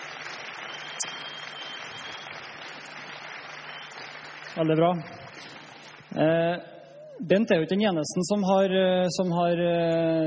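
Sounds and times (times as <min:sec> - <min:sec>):
audience clapping: 0:00.0 - 0:06.0
speech: 0:04.6 - 0:10.2.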